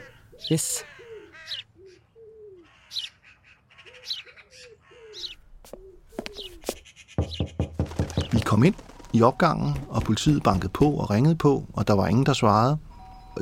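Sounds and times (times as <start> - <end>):
wood pigeon cooing: 0.0 - 2.9, 3.8 - 10.4
speech: 0.4 - 0.9, 8.6 - 13.4.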